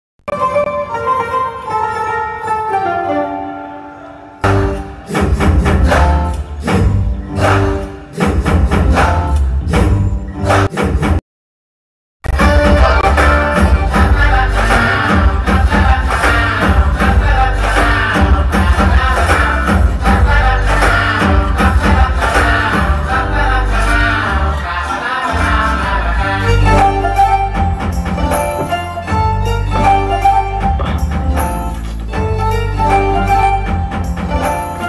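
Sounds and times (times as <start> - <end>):
marriage band music ringtone: 0.3 - 10.7, 12.3 - 34.8.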